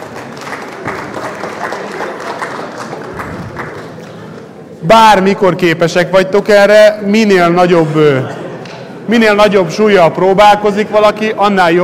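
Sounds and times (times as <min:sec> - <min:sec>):
audience applauding: 0:00.0 - 0:04.5
speech: 0:04.8 - 0:08.4, 0:09.1 - 0:11.8.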